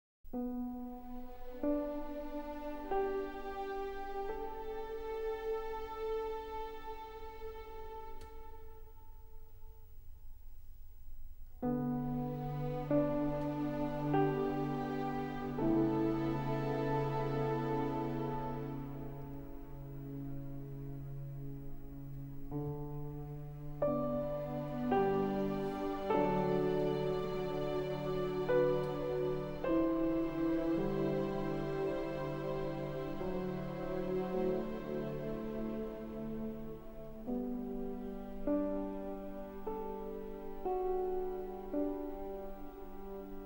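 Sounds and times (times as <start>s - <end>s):
instrumental music: 0.3s - 43.4s.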